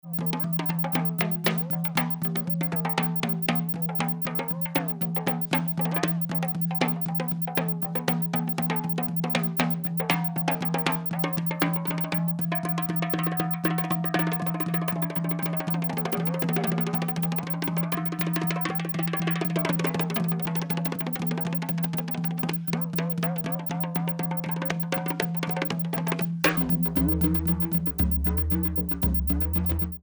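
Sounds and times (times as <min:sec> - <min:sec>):
drums: 0:00.1 - 0:30.0.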